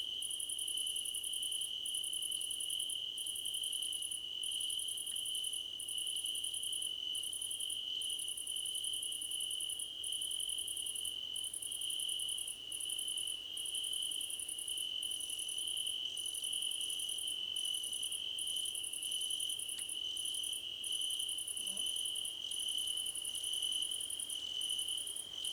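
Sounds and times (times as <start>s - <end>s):
crickets chirping: 0.1s - 25.5s.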